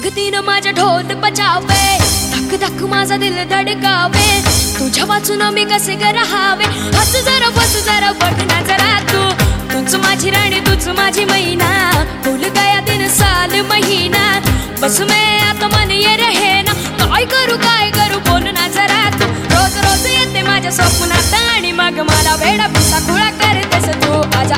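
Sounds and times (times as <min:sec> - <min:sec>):
Marathi remake music: 0:00.0 - 0:24.5.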